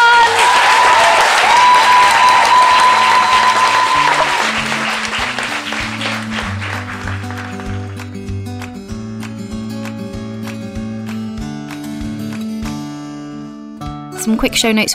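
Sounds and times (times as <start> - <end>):
loud audience applause: 0.0 - 8.3
speech: 14.4 - 14.9.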